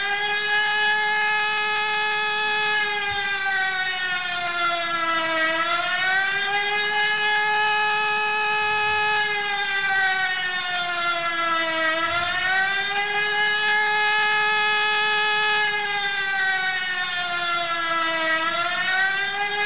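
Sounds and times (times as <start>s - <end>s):
general warning siren: 0.0s - 19.6s.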